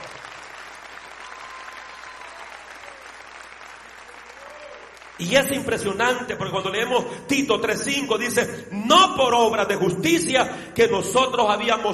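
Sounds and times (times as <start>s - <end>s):
audience applauding: 0.0s - 6.1s
speech: 5.2s - 11.9s.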